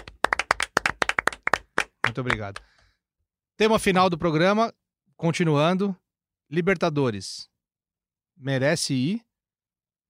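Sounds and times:
hosts clapping hands in studio: 0.0 - 2.9
speech: 2.2 - 2.8, 3.6 - 7.5, 8.4 - 9.3.

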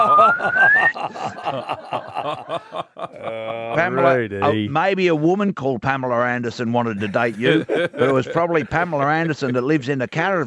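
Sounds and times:
thin whistle sliding upward imitating Pinocchio's growing nose: 0.0 - 1.0
several people snickering and laughing: 0.0 - 4.7, 7.0 - 10.0
speech: 0.3 - 0.6, 1.5 - 3.0, 3.8 - 10.4.

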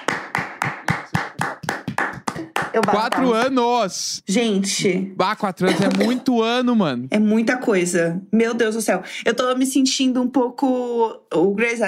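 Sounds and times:
hand clapping: 0.0 - 3.5
speech: 2.8 - 11.8.

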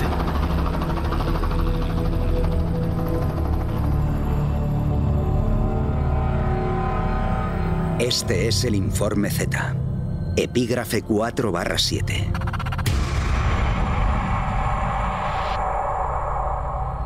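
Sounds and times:
helicopter flying: 0.0 - 8.0, 12.0 - 17.0
speech: 8.0 - 9.8, 10.4 - 12.5.

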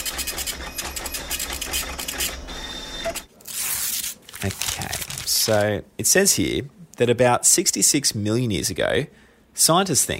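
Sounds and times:
printer printing a report: 0.0 - 3.3
speech: 4.4 - 10.1.

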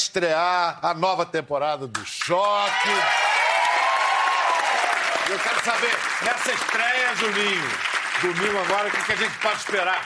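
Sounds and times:
speech: 0.2 - 3.4, 5.3 - 10.0
applause: 2.2 - 10.0.

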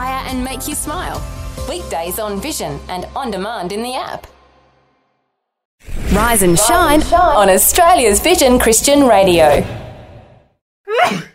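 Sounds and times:
speech: 0.3 - 4.4, 5.8 - 9.8
person sneezing: 10.9 - 11.3.

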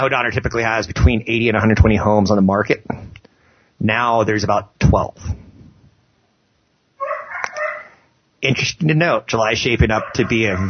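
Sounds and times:
speech: 0.0 - 3.0, 3.8 - 5.4, 8.4 - 10.6
dog barking: 7.0 - 8.0, 9.9 - 10.6.

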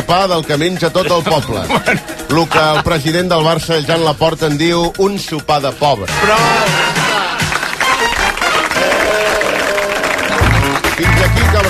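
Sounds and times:
speech: 0.1 - 7.3
laughter: 0.9 - 3.1, 6.2 - 10.7
voices cheering: 6.2 - 10.8
audience applause: 6.6 - 11.6.

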